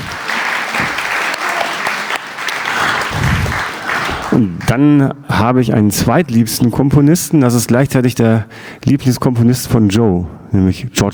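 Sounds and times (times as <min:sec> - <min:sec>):
audience applause: 0:00.0 - 0:04.7
speech: 0:04.4 - 0:11.1.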